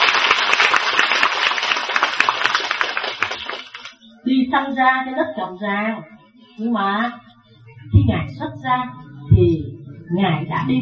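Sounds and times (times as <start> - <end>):
audience applause: 0.0 - 4.0
speech: 4.5 - 7.2, 8.1 - 10.8.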